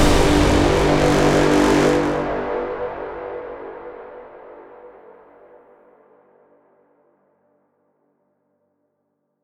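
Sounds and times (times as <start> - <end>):
hybrid ethnic trailer music: 0.0 - 5.2.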